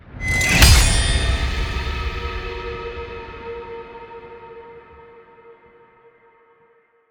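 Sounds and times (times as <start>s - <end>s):
sword grab and slam: 0.2s - 2.7s.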